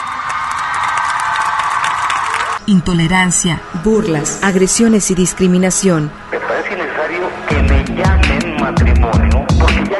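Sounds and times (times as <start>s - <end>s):
audience applause at a public event in Mexico: 0.0s - 2.6s
speech: 2.7s - 9.9s.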